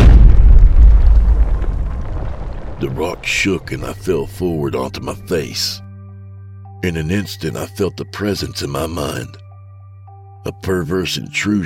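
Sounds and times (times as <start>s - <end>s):
deep thunderous boom: 0.0s - 4.7s
speech: 3.0s - 5.8s, 6.8s - 9.4s, 10.4s - 11.6s.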